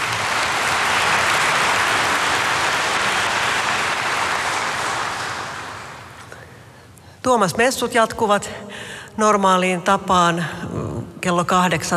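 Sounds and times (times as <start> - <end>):
audience applause in church: 0.0 - 6.2
speech: 7.3 - 11.9.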